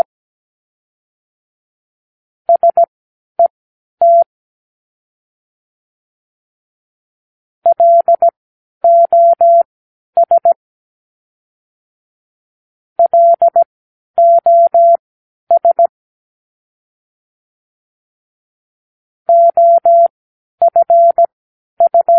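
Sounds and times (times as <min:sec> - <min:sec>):
morse code practice words: 0:02.6 - 0:02.9, 0:04.0 - 0:04.2, 0:07.7 - 0:08.3, 0:08.9 - 0:09.6, 0:10.2 - 0:10.6, 0:13.0 - 0:13.6, 0:14.2 - 0:15.9, 0:19.3 - 0:22.1.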